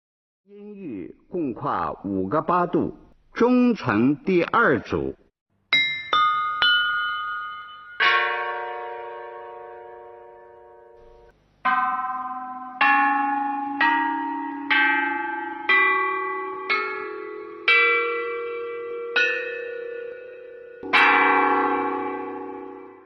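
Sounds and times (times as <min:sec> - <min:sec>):
speech: 0:00.5 - 0:05.2
ancient bronze chime bells bianzhong melody: 0:05.7 - 0:23.0.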